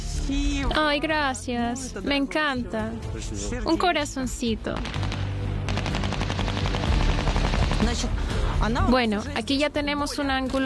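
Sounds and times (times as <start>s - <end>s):
speech: 0.3s - 5.2s, 7.9s - 10.6s
gunshots at a shooting practice: 4.8s - 8.2s.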